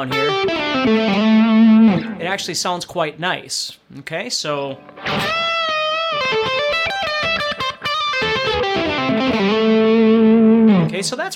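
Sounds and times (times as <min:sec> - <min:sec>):
distorted electric guitar lick with blues note: 0:00.0 - 0:02.6, 0:04.8 - 0:11.0
speech: 0:00.0 - 0:05.4, 0:11.0 - 0:11.3.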